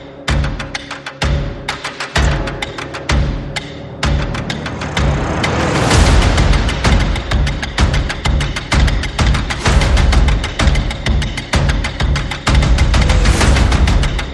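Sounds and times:
percussion: 0.0s - 14.3s
sound effects: 2.2s - 7.5s.

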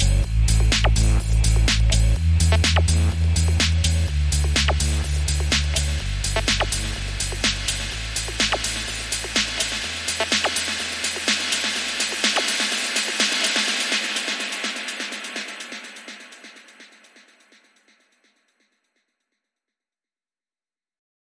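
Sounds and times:
drums: 0.0s - 18.4s
vocals: 2.8s - 17.4s.

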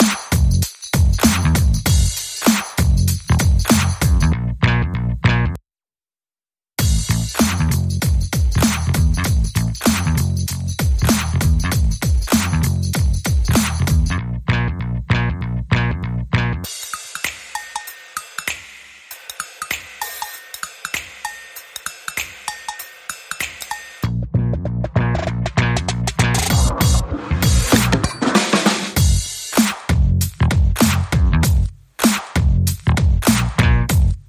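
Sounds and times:
drums: 0.0s - 4.3s, 6.8s - 14.2s, 16.6s - 34.2s
bass: 0.3s - 5.6s, 6.8s - 16.7s, 24.0s - 28.3s, 29.0s - 34.2s.

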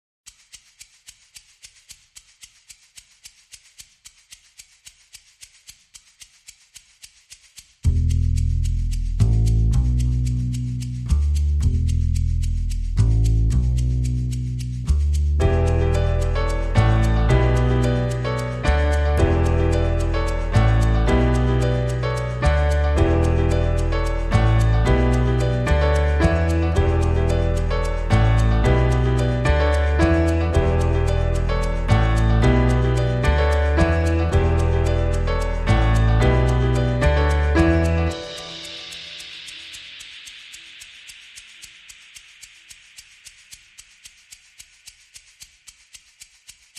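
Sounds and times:
piano: 7.9s - 40.6s.

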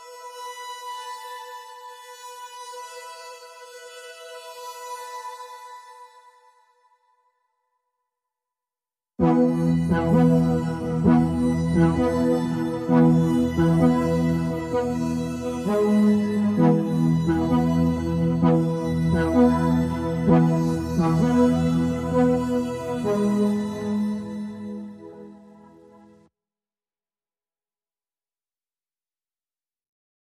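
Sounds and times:
Hyproskope pad: 9.2s - 26.3s.

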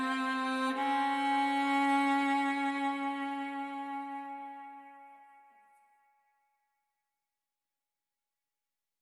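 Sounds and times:
strings: 0.0s - 5.9s.

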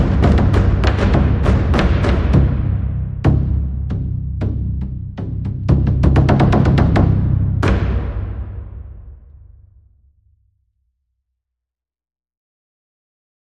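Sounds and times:
low taiko drums: 0.0s - 9.8s.

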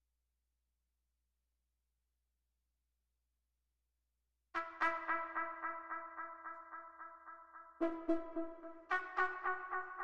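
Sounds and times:
brass instruments: 4.6s - 10.0s.

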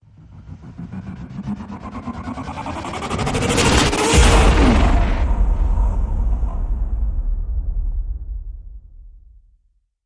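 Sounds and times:
death spiral hit: 1.4s - 9.4s.

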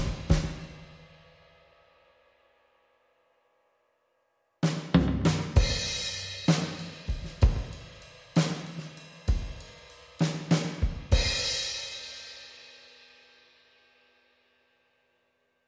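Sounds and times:
clean drums: 0.0s - 2.3s, 4.6s - 14.0s.

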